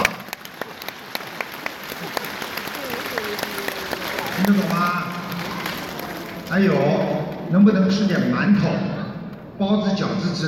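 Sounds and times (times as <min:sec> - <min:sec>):
applause: 0:00.0 - 0:07.5
speech: 0:04.4 - 0:05.0, 0:06.5 - 0:08.9, 0:09.6 - 0:10.4.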